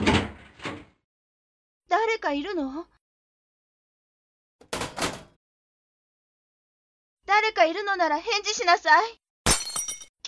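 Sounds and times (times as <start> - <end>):
door opening: 0.0 - 1.0
speech: 2.2 - 3.0, 7.5 - 9.2.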